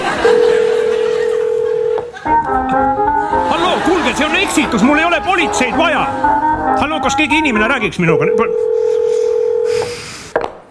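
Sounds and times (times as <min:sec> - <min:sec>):
telephone call being forwarded tone: 0:00.0 - 0:02.2, 0:08.0 - 0:10.1
laughter: 0:00.0 - 0:06.4
speech: 0:04.1 - 0:08.8.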